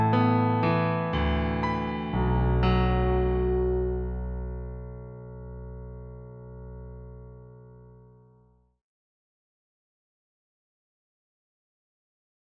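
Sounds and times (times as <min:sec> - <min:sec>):
piano solo: 0:00.0 - 0:08.3.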